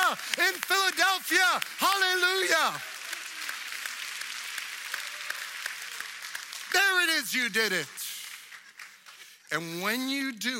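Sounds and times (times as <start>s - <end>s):
crowd noise: 0.0s - 9.6s
audience clapping hands in a steady rhythmic beat: 0.0s - 10.0s
speech: 7.2s - 8.1s, 9.5s - 10.5s.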